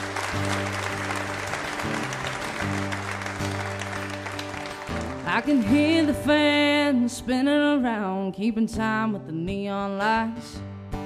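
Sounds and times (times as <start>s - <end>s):
crowd clapping and cheering for a live band: 0.0s - 6.9s
live band playing sustained chords: 0.0s - 7.8s
speech: 5.4s - 10.6s.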